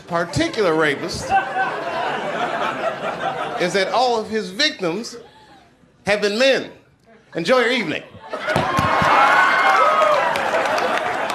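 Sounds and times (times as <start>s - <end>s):
laughter: 0.0s - 4.3s, 7.9s - 9.3s, 10.4s - 11.3s
speech: 0.1s - 1.6s, 3.2s - 5.3s, 6.0s - 8.6s
audience clapping: 8.5s - 11.3s.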